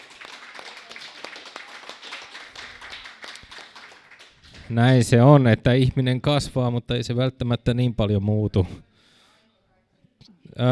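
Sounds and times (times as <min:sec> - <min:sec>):
crowd applauding: 0:00.0 - 0:05.0
speech: 0:04.7 - 0:08.9, 0:10.6 - 0:10.7.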